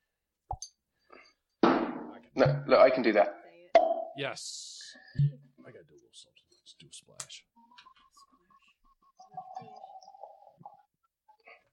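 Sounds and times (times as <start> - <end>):
hollow pop made with the mouth: 1.6 - 4.2
speech: 2.4 - 3.4, 4.2 - 5.4.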